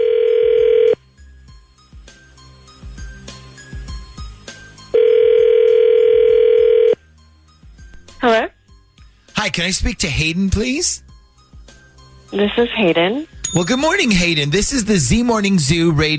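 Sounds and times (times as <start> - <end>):
phone line ringing out: 0.0 - 1.0, 5.0 - 7.0
speech: 9.5 - 11.1, 12.3 - 16.1.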